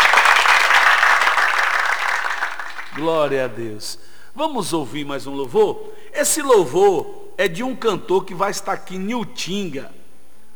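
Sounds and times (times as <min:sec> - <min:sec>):
applause: 0:00.0 - 0:03.4
speech: 0:03.0 - 0:10.0.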